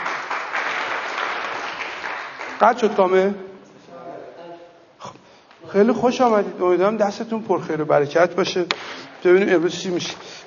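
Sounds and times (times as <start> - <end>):
audience applause honoring an arriving guest: 0.0 - 3.0
speech: 2.6 - 3.5, 5.7 - 10.4.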